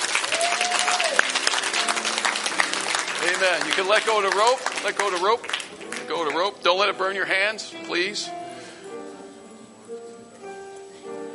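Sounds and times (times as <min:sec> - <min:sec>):
audience hand clapping: 0:00.0 - 0:06.6
speech: 0:03.4 - 0:05.5, 0:06.1 - 0:08.4.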